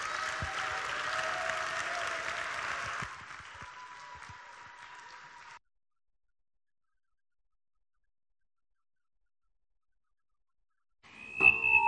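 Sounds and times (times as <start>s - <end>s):
audience applauding a speaker at Highland Square: 0.0s - 5.6s.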